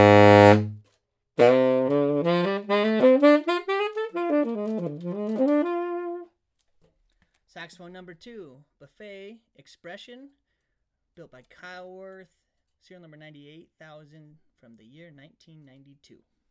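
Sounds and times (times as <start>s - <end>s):
Buffet Super Dynaction tenor saxophone: 0.0s - 0.8s, 1.4s - 6.3s.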